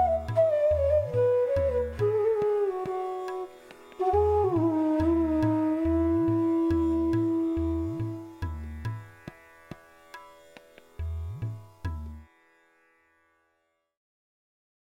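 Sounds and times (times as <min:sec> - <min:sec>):
flute playing a raga: 0:00.0 - 0:09.2.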